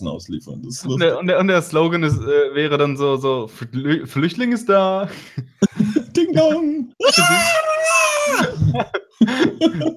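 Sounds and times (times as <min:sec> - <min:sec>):
speech: 0:00.0 - 0:09.9
laughter: 0:05.4 - 0:09.9
voice imitating screaming from an online retailer's advert: 0:07.0 - 0:08.7.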